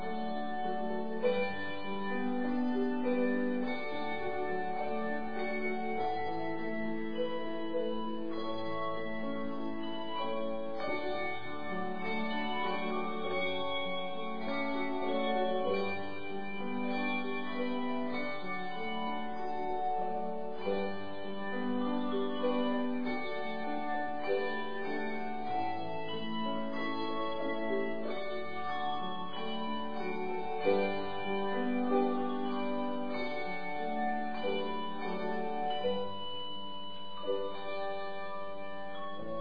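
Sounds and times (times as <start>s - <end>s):
bell choir: 0.0s - 39.3s.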